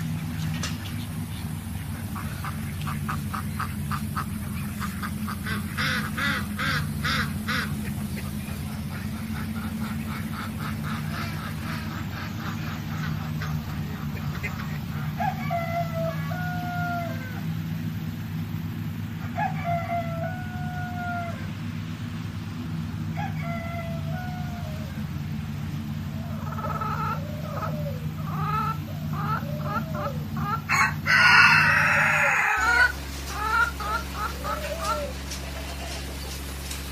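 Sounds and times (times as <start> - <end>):
farm animals calling: 0.0 - 36.9
steady low engine-like hum: 0.0 - 36.9.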